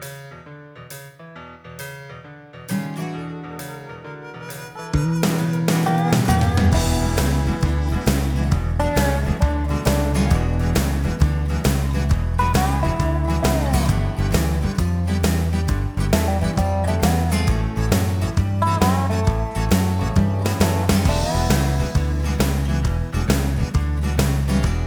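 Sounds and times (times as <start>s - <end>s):
background music: 3.5s - 24.8s.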